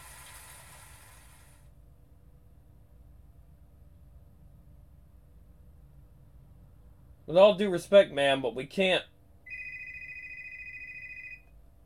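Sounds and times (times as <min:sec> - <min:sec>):
quiet hum: 0:00.0 - 0:11.8
speech: 0:07.3 - 0:09.1
telephone ringing: 0:09.5 - 0:11.5.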